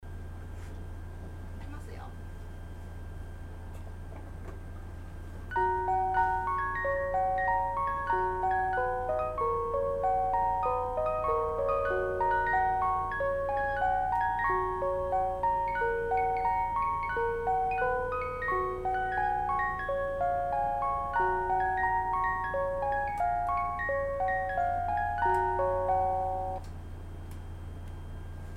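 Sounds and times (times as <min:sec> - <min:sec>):
organ: 0:05.5 - 0:26.7.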